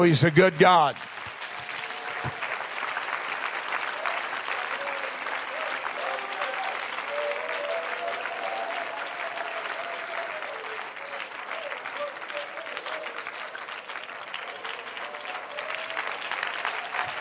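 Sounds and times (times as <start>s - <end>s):
speech: 0.0s - 1.1s
audience clapping hands: 0.0s - 17.2s.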